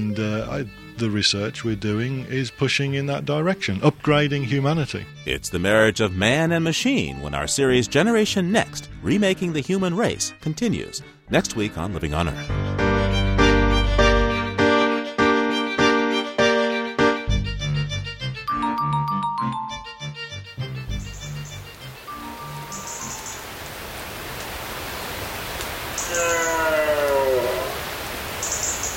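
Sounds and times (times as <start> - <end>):
speech: 0.0 - 12.9
instrumental music: 0.0 - 23.4
chirping bird calls: 21.0 - 23.6, 25.9 - 27.8, 28.4 - 28.9
hard rain falling at a forest edge: 21.7 - 28.9.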